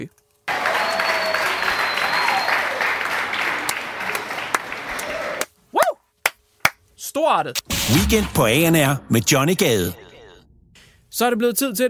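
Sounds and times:
sizable crowd applauding: 0.5 - 5.6
faint whistles: 0.8 - 2.7
speech: 7.2 - 10.0, 11.2 - 11.8.

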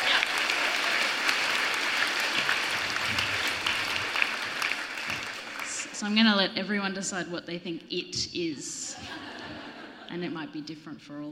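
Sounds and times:
audience applause: 0.0 - 6.0
speech: 6.0 - 9.3, 10.1 - 11.3
laughter: 8.8 - 10.3.

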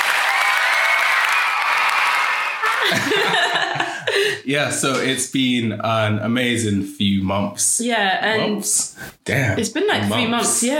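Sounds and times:
cheering and applause sound effect: 0.0 - 3.6
laughter: 2.3 - 4.7
speech: 2.9 - 3.4, 4.5 - 10.7.

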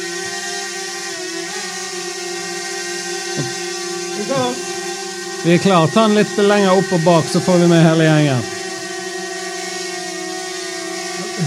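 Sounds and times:
drone motors buzzing after takeoff: 0.0 - 11.4
speech: 3.4 - 3.6, 5.4 - 8.6.

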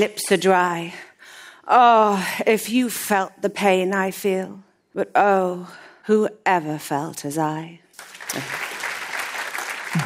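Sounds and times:
speech: 0.0 - 1.1, 1.7 - 7.8, 8.4 - 8.6
audience clapping: 7.9 - 10.0.

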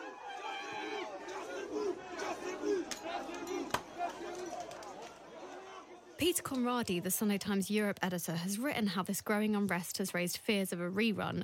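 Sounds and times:
protesters shouting at street demonstration: 0.0 - 7.1
speech: 6.2 - 11.4.

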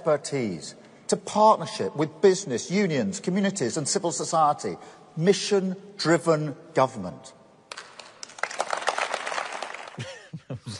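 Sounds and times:
speech: 0.0 - 7.4
thin scattered round of applause: 7.7 - 10.0.

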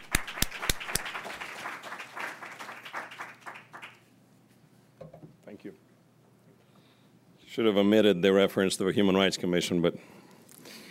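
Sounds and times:
audience applause: 0.0 - 4.0
speech: 5.6 - 5.9, 7.6 - 10.2.

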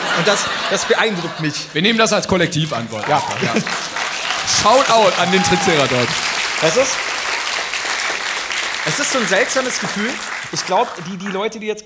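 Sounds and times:
laughter: 0.0 - 7.0, 8.9 - 11.2
speech: 0.2 - 3.9, 4.5 - 7.1, 8.8 - 11.8
audience clapping: 2.2 - 11.8.

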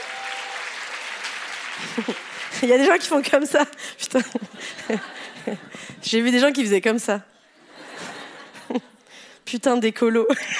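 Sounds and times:
audience applause in a hall: 0.0 - 3.1
laughter: 1.8 - 2.6, 4.1 - 6.0, 7.4 - 9.0
speech: 1.8 - 7.3, 9.5 - 10.5.

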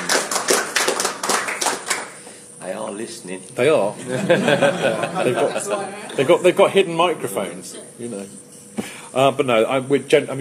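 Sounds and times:
round of applause: 0.0 - 2.2
speech: 2.8 - 10.4
laughter: 4.0 - 6.5.

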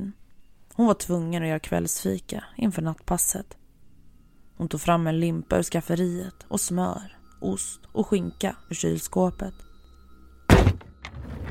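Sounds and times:
speech: 0.8 - 3.6, 4.6 - 9.7
heavy object falling on the floor upstairs: 10.5 - 11.5.

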